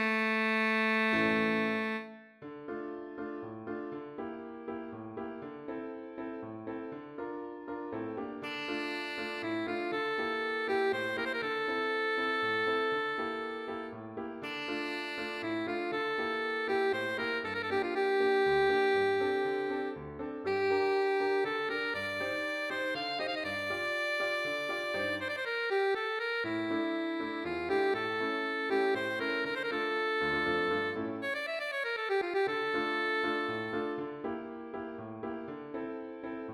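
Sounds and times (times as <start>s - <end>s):
alto saxophone: 0.0s - 2.5s, 8.4s - 34.5s
piano: 0.0s - 36.5s.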